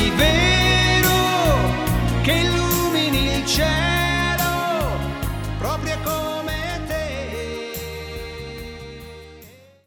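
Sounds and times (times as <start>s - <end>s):
synchronized singing: 0.0s - 9.5s.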